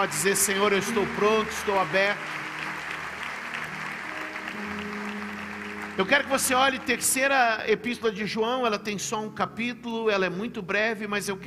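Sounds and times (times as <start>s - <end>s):
speech: 0.0s - 2.4s, 6.0s - 11.4s
audience applause: 0.0s - 7.5s.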